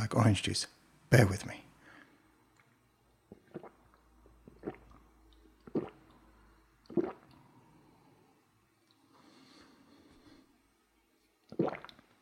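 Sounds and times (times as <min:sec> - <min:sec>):
speech: 0:00.1 - 0:01.6, 0:11.6 - 0:11.8
sips and swallows of an orange-coloured drink: 0:02.6 - 0:08.2, 0:11.4 - 0:12.1.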